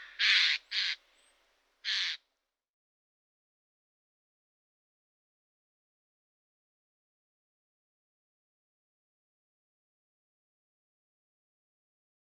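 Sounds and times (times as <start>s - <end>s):
Eurasian jay: 0.0s - 1.3s, 1.9s - 2.2s.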